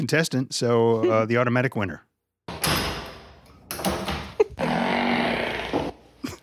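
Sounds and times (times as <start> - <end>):
speech: 0.0 - 2.1
loud drawn-out farts: 4.6 - 6.0.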